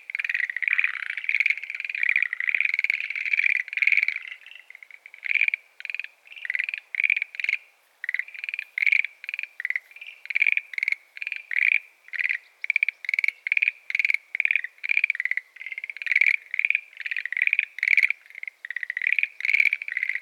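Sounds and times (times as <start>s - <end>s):
frogs croaking in a pond: 0.0s - 20.2s.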